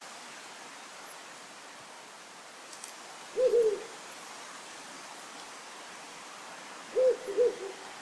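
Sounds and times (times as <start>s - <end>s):
Ural owl low wavering double hoot: 3.4s - 4.0s, 6.9s - 7.9s.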